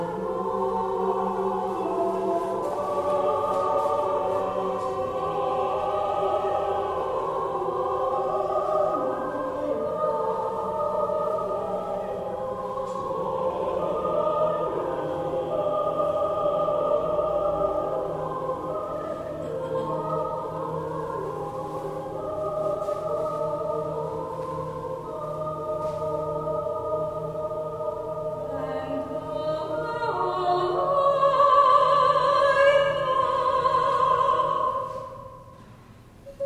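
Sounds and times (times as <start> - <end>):
SATB choir singing: 0.0 - 35.6, 36.3 - 36.4.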